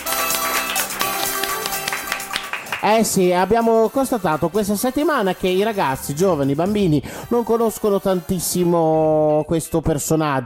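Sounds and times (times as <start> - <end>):
crowd applause: 0.0 - 3.0
speech: 2.8 - 10.4.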